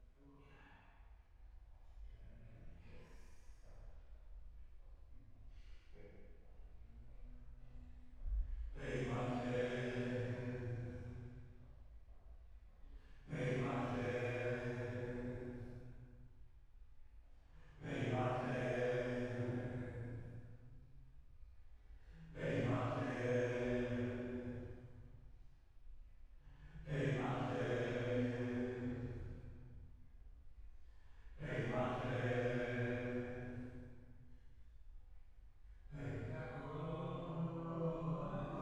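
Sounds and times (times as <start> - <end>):
choir singing: 8.8 - 11.1, 13.3 - 15.6, 17.8 - 20.2, 22.3 - 24.6, 26.8 - 29.3, 31.4 - 33.8, 35.9 - 38.6.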